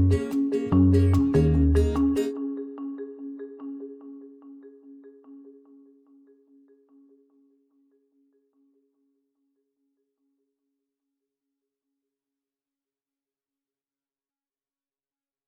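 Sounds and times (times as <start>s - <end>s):
acoustic music: 0.0s - 2.5s.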